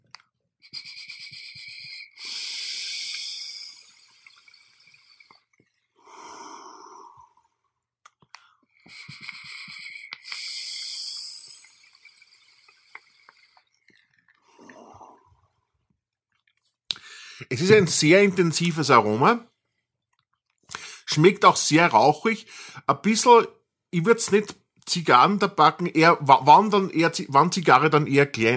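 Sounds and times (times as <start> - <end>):
vaping Flavor Art Tuscan liquid on an Emmet 25 atomizer at 40 watts: 0.6 - 5.5, 8.8 - 13.8
breathy exhale: 1.6 - 7.6, 8.4 - 13.7, 17.0 - 17.5
speech: 17.5 - 19.5, 21.2 - 28.5.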